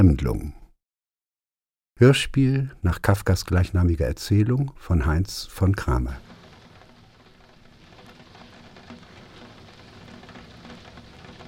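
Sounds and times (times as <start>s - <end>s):
speech: 0.0s - 0.6s, 2.0s - 6.3s
rain falling outside: 5.0s - 11.4s.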